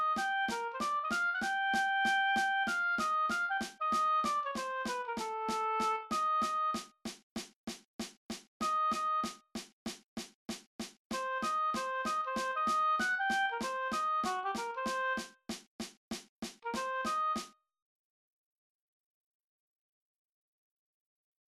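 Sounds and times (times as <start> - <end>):
oboe in cut time: 0.0 - 6.9, 8.6 - 9.4, 11.2 - 15.3, 16.7 - 17.5.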